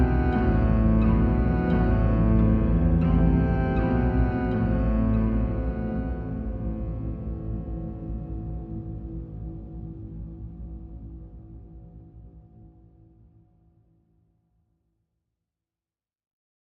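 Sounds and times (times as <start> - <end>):
instrumental music without voice or lead cello: 0.0 - 7.2.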